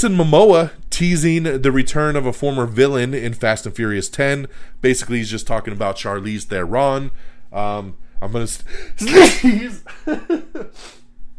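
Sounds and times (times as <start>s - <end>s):
speech: 0.0s - 11.0s
faint low hum: 0.0s - 11.3s
person sneezing: 9.0s - 9.8s.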